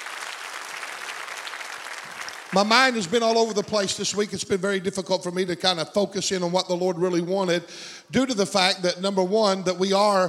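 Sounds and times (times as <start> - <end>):
audience applause: 0.0 - 3.5
speech: 2.5 - 10.2.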